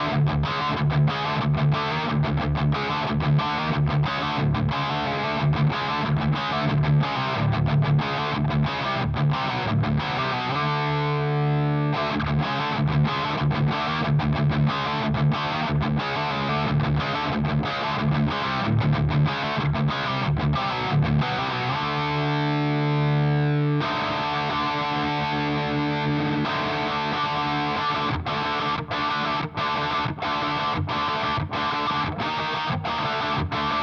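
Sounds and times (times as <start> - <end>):
HX Stomp Rat distortion sound: 0.0 - 33.8.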